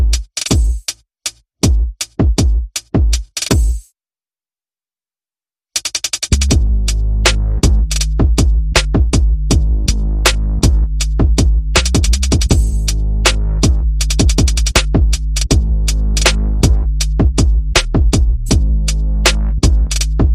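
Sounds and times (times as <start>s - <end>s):
percussion: 0.0s - 3.9s, 5.8s - 20.3s
bass: 6.3s - 20.3s.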